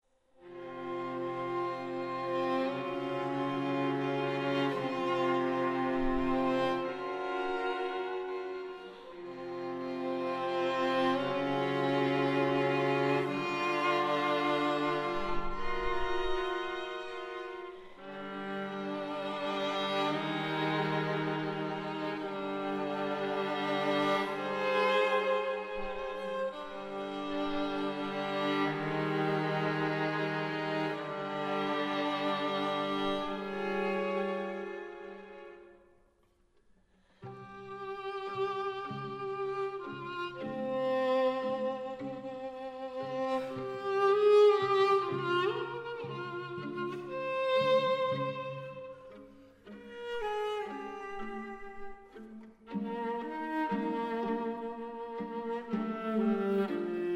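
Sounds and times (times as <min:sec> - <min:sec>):
string quartet playing: 0:00.4 - 0:35.9, 0:37.0 - 0:57.1.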